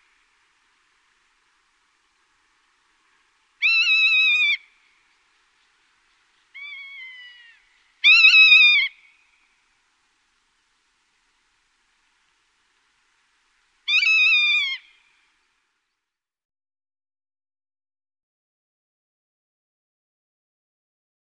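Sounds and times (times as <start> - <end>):
rough-legged buzzard calling: 3.6 - 4.8, 6.6 - 9.2, 13.9 - 15.0.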